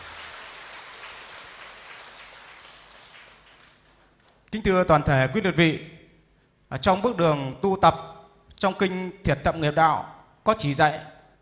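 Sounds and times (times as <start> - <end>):
audience at a Buddhist retreat applauding to welcome a monk: 0.0 - 4.4
speech: 4.5 - 5.9, 6.7 - 11.1.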